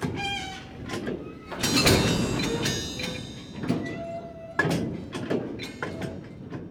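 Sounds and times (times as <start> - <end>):
train shunting on track: 0.0 - 6.6.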